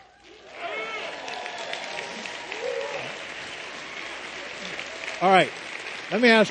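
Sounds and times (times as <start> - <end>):
Marines in an audience whooping and yelling a battle cry: 0.0 - 5.2
audience crowd noise: 0.0 - 6.4
speech: 5.2 - 6.4.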